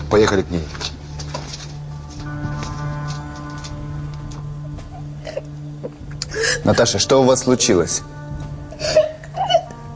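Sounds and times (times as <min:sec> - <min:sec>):
speech: 0:00.1 - 0:00.9, 0:06.6 - 0:08.1
woman crying: 0:04.9 - 0:07.1, 0:08.7 - 0:09.9.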